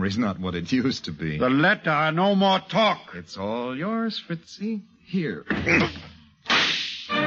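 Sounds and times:
speech: 0:00.0 - 0:06.1
punch sound effect for a left hook in a radio drama: 0:06.5 - 0:07.1.

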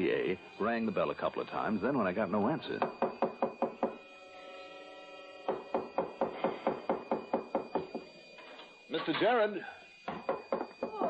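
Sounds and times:
speech: 0:00.2 - 0:03.1, 0:09.0 - 0:09.8
pounding on a door: 0:02.8 - 0:04.0, 0:05.4 - 0:08.1, 0:10.0 - 0:11.0.

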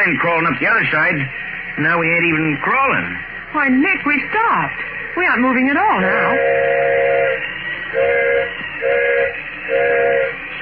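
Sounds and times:
speech: 0:00.0 - 0:06.9
train whistle blowing in short loud blasts: 0:05.9 - 0:10.6.

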